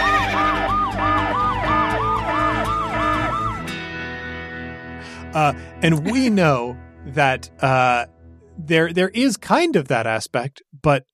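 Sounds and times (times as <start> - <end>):
alarm siren sound effect: 0.0 - 3.7
speech: 5.4 - 11.1.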